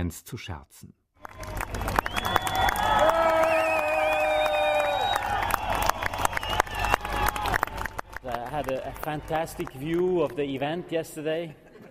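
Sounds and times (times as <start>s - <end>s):
speech: 0.0s - 1.0s, 8.2s - 11.6s
scattered cheering: 1.2s - 8.1s
crowd applause at outdoor event: 1.2s - 11.0s.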